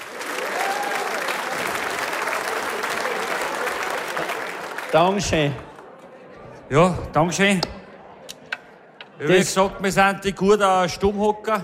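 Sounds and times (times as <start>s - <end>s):
audience applause: 0.0s - 6.0s
faint cheers: 0.2s - 1.8s
speech: 4.9s - 5.7s, 6.7s - 7.8s, 9.2s - 11.6s.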